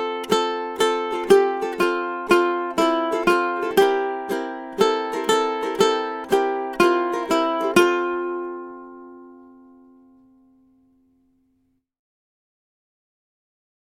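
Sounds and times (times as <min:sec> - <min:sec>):
ukulele blues song: 0:00.0 - 0:10.4.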